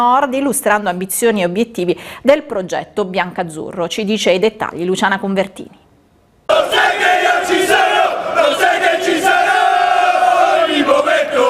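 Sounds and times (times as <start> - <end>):
speech: 0.0 - 5.8
football ultras chanting: 6.5 - 11.4.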